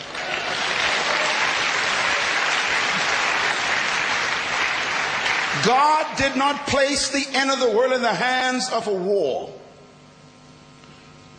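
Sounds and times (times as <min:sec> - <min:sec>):
audience applause: 0:00.0 - 0:06.2
speech: 0:05.6 - 0:09.6.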